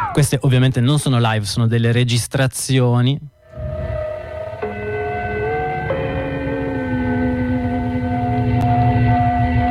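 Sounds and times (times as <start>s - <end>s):
speech: 0.2s - 3.4s
numbers station gong-like chime tones: 4.0s - 9.6s.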